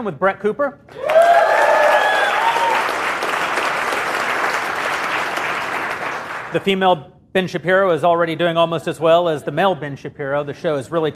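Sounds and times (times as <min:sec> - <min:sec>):
speech: 0:00.0 - 0:01.1, 0:06.5 - 0:11.1
person cheering: 0:00.9 - 0:03.0
audience applause: 0:00.9 - 0:06.6.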